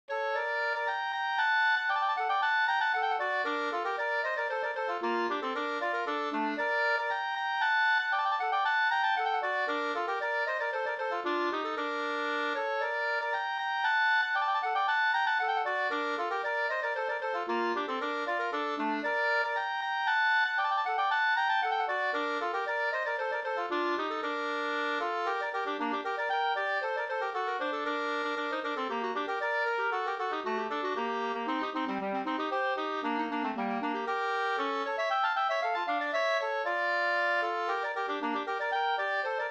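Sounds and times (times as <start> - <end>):
folk dance music: 0.4 - 39.4.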